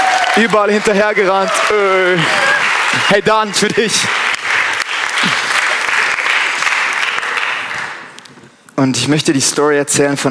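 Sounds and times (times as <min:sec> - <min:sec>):
audience applause: 0:00.0 - 0:08.2
speech: 0:00.4 - 0:04.4, 0:08.8 - 0:10.2.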